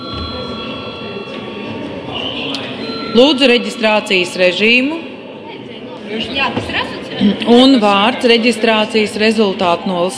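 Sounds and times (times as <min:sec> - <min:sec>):
bell rung to announce a recess: 0:00.0 - 0:05.4
speech: 0:03.1 - 0:05.1, 0:06.1 - 0:10.1.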